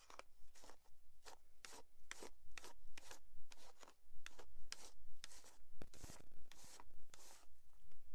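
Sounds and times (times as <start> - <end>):
hair being combed during a haircut: 0.0 - 8.0.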